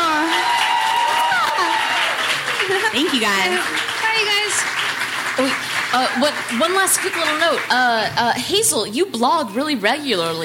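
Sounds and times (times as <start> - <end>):
audience applause: 0.0 - 8.0
speech: 3.0 - 4.8, 5.4 - 10.4.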